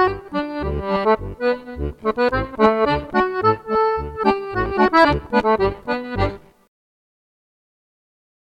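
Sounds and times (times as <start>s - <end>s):
glockenspiel playing a polka schottische: 0.0s - 6.4s.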